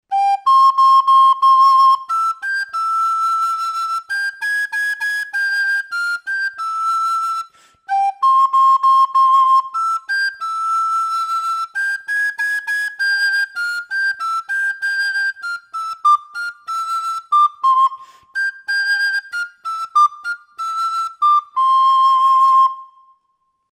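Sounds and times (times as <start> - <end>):
traditional Galician whistle music: 0.0 - 23.6.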